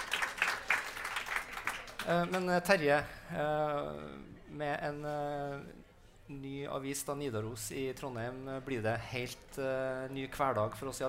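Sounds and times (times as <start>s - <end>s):
audience applause: 0.0s - 2.4s
speech: 2.0s - 11.0s.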